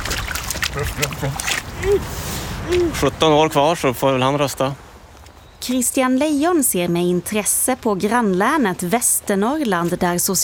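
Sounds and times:
rubber boots stepping into a water puddle: 0.0s - 2.0s
speech: 0.8s - 4.9s, 5.6s - 10.4s.

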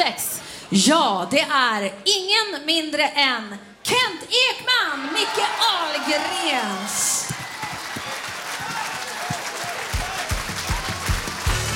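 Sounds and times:
speech: 0.7s - 7.3s
voices cheering: 5.0s - 11.7s
audience applause: 5.3s - 11.7s.

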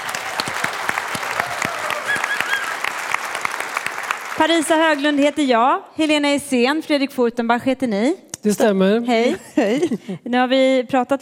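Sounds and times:
audience applause: 0.0s - 5.4s
speech: 4.4s - 11.2s.

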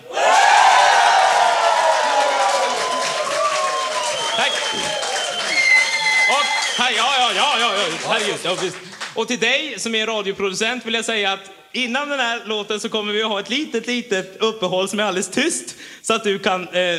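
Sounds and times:
crowd cheering with whoops and high shouting voices: 0.0s - 8.4s
crowd clapping: 0.3s - 9.3s
speech: 7.8s - 16.9s.

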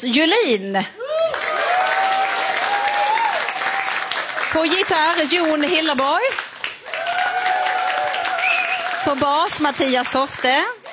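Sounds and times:
speech: 0.0s - 1.0s, 4.5s - 6.4s, 9.0s - 10.8s
audience applause for house band: 1.3s - 10.9s.

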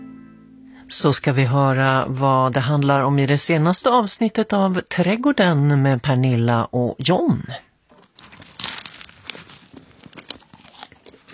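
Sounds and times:
speech: 0.9s - 7.7s
person munching a chocolate croissant: 7.9s - 11.3s.

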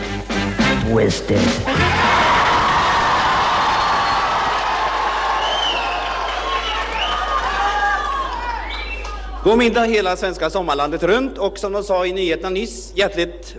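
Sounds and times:
speech: 0.9s - 2.0s, 9.4s - 13.5s
crowd of young people cheering and shouting: 1.7s - 9.5s
high-pitched whoops and squeals: 1.9s - 9.4s.

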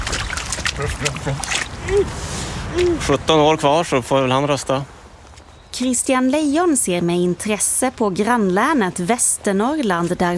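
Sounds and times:
child in rubber boots stomping into a puddle: 0.0s - 2.0s
speech: 0.8s - 5.0s, 5.7s - 10.3s.

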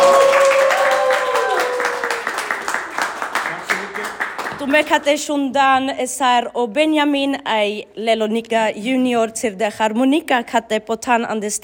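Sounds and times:
audience applauding after a harmonica concert at the state library in Malmö: 0.0s - 5.0s
speech: 4.7s - 11.6s.

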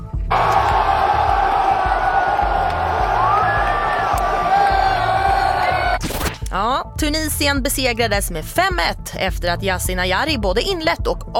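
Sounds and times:
stadium crowd cheering at football match in Monterrey: 0.3s - 6.0s
speech: 6.6s - 11.3s.

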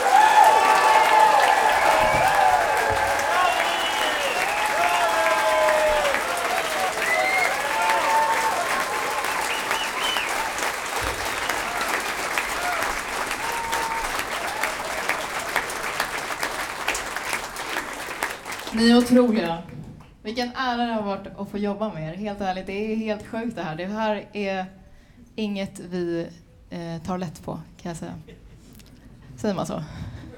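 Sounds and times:
loud audience applause: 0.0s - 19.4s
speech: 19.0s - 19.6s, 20.2s - 24.8s, 25.4s - 28.4s, 29.4s - 30.0s.

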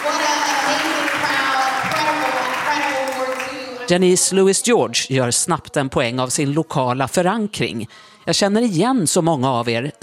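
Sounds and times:
audience applause in a church: 0.0s - 3.9s
speech: 3.9s - 10.0s.

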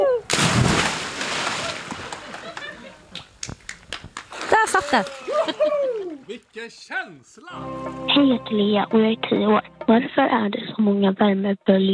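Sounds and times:
person jumping into water: 0.3s - 2.4s, 4.3s - 6.2s
laughter: 1.5s - 3.2s, 4.5s - 6.4s
speech: 4.9s - 5.6s, 6.3s - 11.9s.

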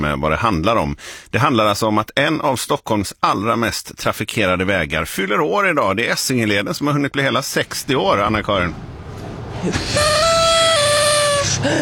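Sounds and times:
speech: 0.0s - 9.0s, 9.6s - 10.3s, 11.6s - 11.7s
party horn being blown: 9.8s - 11.7s.

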